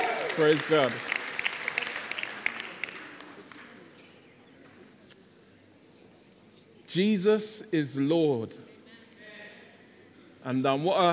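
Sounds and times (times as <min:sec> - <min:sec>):
church congregation applauding for the people in the balcony: 0:00.0 - 0:03.8
speech: 0:00.4 - 0:01.1, 0:06.9 - 0:08.7, 0:10.4 - 0:11.1.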